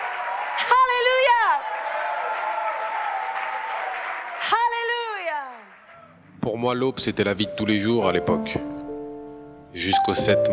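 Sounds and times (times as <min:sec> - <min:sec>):
crowd applauding: 0:00.0 - 0:06.4
speech: 0:06.5 - 0:08.8, 0:09.7 - 0:10.5.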